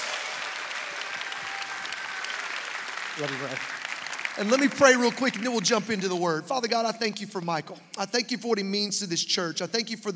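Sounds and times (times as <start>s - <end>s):
audience applause welcoming a lead pastor at a church: 0.0s - 6.1s
speech: 3.2s - 3.8s, 4.4s - 10.1s.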